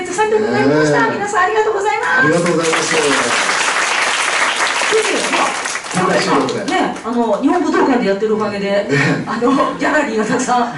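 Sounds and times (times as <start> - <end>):
speech: 0.2 - 3.6, 4.9 - 10.7
audience applause: 2.2 - 6.8.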